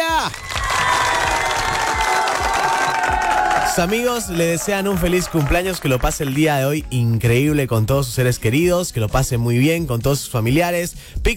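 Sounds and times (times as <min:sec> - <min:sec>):
cheering: 0:00.0 - 0:06.5
applause: 0:00.0 - 0:06.9
speech: 0:03.8 - 0:11.3.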